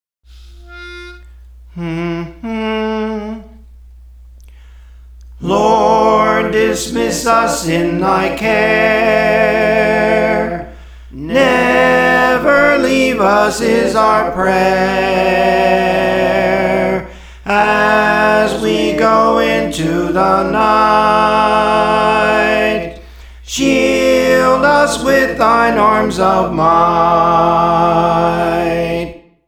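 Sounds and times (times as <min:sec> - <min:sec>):
soprano singing: 0:00.4 - 0:03.7, 0:05.4 - 0:29.2.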